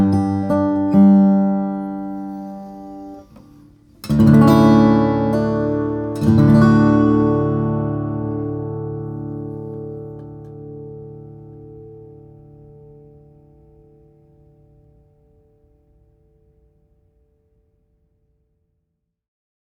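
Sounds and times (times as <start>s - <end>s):
OM flattop steel string guitar of Brazilian rosewood and spruce: 0.0s - 15.2s.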